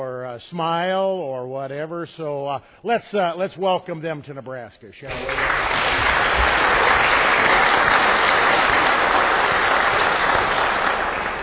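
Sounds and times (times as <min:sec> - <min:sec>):
speech: 0:00.4 - 0:06.6
crowd clapping: 0:05.1 - 0:11.4.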